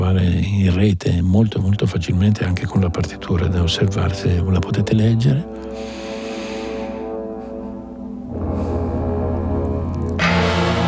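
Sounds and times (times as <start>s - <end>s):
speech: 0.1s - 6.0s
orchestral gongs: 5.5s - 10.8s
bright loud metallic strike: 10.2s - 10.8s.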